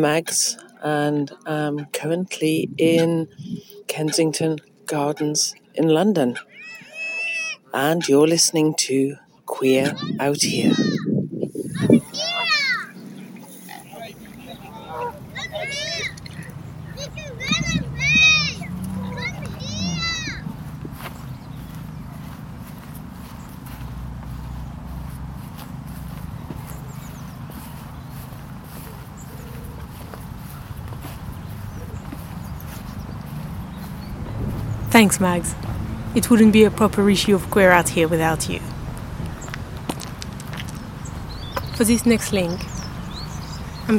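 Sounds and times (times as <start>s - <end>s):
speech: 0.0s - 6.5s, 7.7s - 11.0s, 35.0s - 35.6s, 36.2s - 38.7s, 41.8s - 42.8s
steady outdoor hum: 0.0s - 43.9s
children playing in a park: 6.4s - 7.7s, 9.6s - 37.6s.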